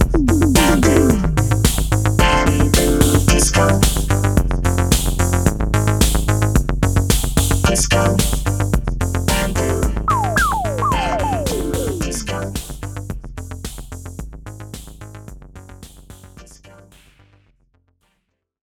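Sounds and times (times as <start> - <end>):
bamboo disco music: 0.0 - 8.5, 9.3 - 12.9.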